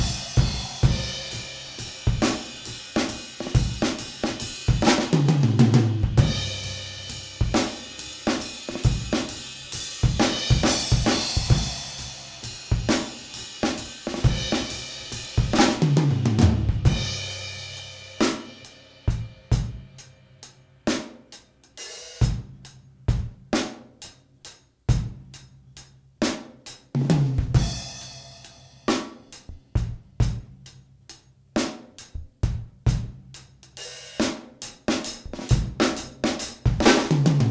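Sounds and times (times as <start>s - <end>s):
slow blues drum groove in 6/8: 0.0s - 37.4s.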